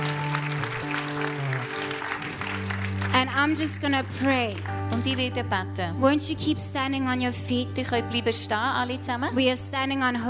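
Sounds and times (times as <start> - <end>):
congregation applauding during praise time at a church service: 0.0 - 4.9
sustained musical tones: 0.0 - 5.0
speech: 3.1 - 10.2.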